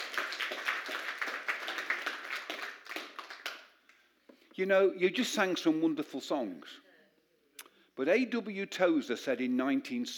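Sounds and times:
audience applause: 0.0s - 3.6s
speech: 4.6s - 6.9s, 8.0s - 10.1s.

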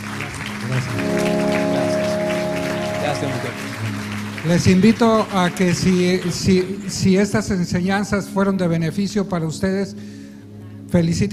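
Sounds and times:
audience applause: 0.0s - 7.4s
speech: 3.2s - 3.6s, 4.4s - 10.2s, 10.9s - 11.3s.

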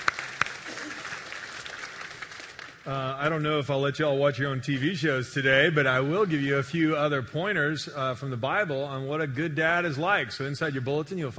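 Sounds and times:
audience applause: 0.0s - 2.8s
speech: 2.8s - 11.3s.

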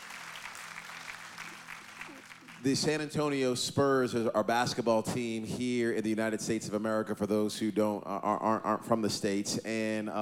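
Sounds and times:
audience clapping: 0.0s - 3.4s
speech: 2.6s - 10.2s.

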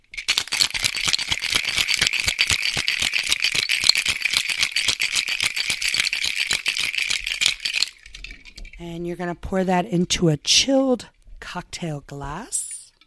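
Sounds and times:
cocktail shaker shaken hard with ice rattling: 0.0s - 8.9s
speech: 8.8s - 12.6s.

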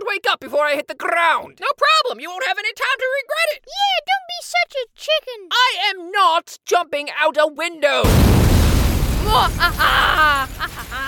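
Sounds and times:
speech: 0.2s - 8.6s, 9.2s - 11.0s
deep rumbling explosion blasting through castle walls: 8.0s - 11.0s.

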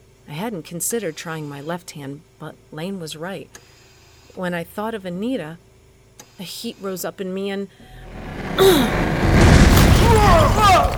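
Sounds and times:
speech: 0.4s - 3.8s, 4.4s - 5.6s, 6.4s - 9.1s
door bursting off its hinges: 7.9s - 10.9s.

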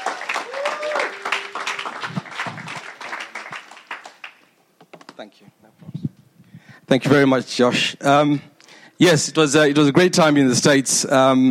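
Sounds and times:
audience applause: 0.0s - 4.5s
speech: 5.2s - 6.0s, 6.9s - 11.5s.

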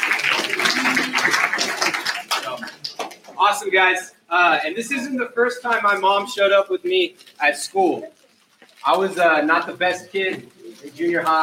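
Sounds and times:
audience applause: 0.0s - 3.4s
speech: 3.5s - 8.2s, 8.8s - 11.4s.

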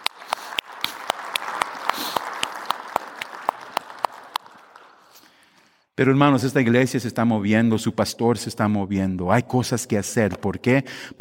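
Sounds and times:
audience applause: 0.0s - 5.2s
speech: 6.0s - 11.1s.

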